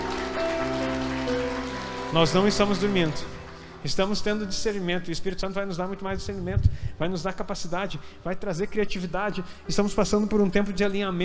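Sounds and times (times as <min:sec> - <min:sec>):
audience applause: 0:00.0 - 0:04.9
speech: 0:02.1 - 0:11.2.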